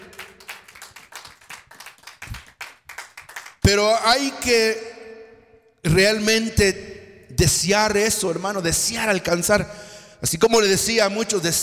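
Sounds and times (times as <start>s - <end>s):
audience clapping hands: 0.0s - 3.7s
speech: 3.7s - 4.9s, 5.8s - 11.6s.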